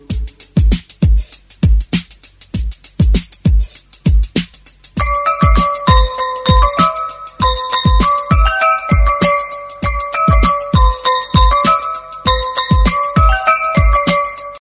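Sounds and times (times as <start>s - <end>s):
Telugu beats: 0.0s - 14.6s.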